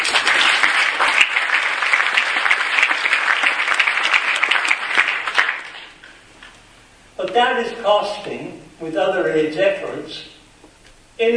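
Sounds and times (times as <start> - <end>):
audience applause: 0.0 - 6.0
speech: 7.4 - 10.3, 11.2 - 11.3.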